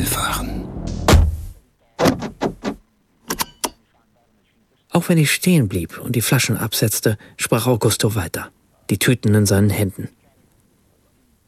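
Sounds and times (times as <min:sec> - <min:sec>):
car door being pulled shut: 0:00.9 - 0:02.8
speech: 0:05.0 - 0:10.2.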